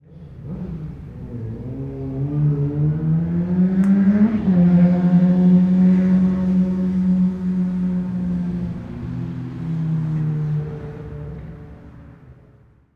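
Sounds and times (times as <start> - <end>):
car or motorcycle engine at full throttle passing with big echo: 0.2 - 9.7.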